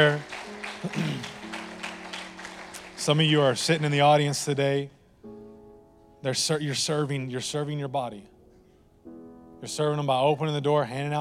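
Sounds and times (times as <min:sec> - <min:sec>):
speech: 0:00.0 - 0:01.3, 0:03.1 - 0:05.0, 0:06.2 - 0:08.3, 0:09.6 - 0:11.1
crowd applause: 0:00.0 - 0:04.4.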